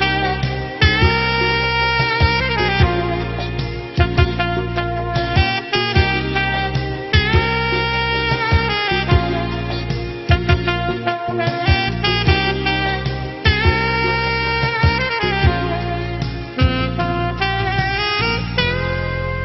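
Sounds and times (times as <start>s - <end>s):
soft saxophone: 0.0s - 19.4s.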